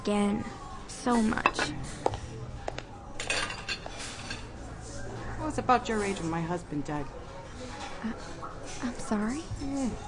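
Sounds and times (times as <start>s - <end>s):
speech: 0.0s - 2.2s, 5.4s - 10.0s
ceramic dishes and a bowl clinking: 1.2s - 1.8s, 3.2s - 4.6s.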